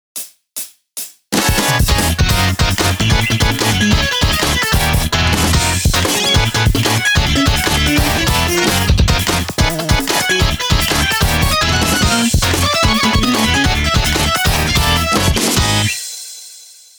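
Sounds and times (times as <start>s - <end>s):
tone: 1.4s - 15.8s.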